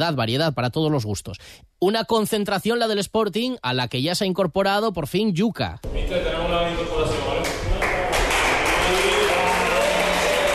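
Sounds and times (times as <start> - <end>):
speech: 0.0 - 7.1
teammates applauding: 7.2 - 10.5.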